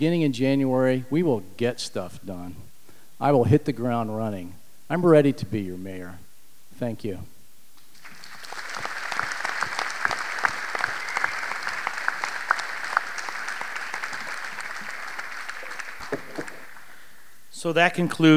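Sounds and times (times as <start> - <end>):
speech: 0.0 - 6.2, 6.8 - 7.3, 17.6 - 18.3
audience applause: 7.9 - 17.0.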